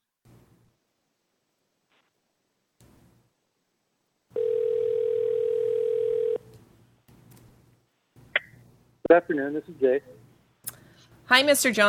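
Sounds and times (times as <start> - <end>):
telephone dial tone while dialing a number: 4.4 - 6.4
speech: 9.1 - 10.2, 11.3 - 11.8.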